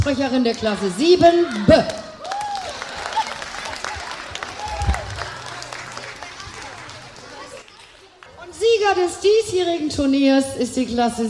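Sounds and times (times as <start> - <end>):
speech: 0.1 - 2.0, 9.0 - 11.2
audience applause for class winners: 2.2 - 8.5.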